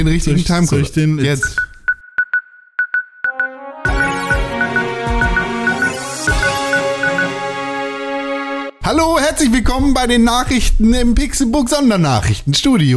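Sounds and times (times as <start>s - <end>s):
speech: 0.0s - 1.7s, 8.9s - 12.9s
bright quick electronic beeps: 1.4s - 7.4s
news-segment jingle music with a driving beat: 2.8s - 8.7s.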